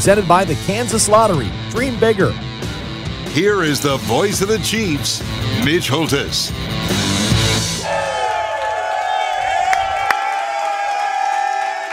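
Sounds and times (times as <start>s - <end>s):
speech: 0.0s - 2.5s, 3.4s - 7.1s
excited crowd cheering and whooping: 7.6s - 11.9s
clapping: 8.3s - 11.9s.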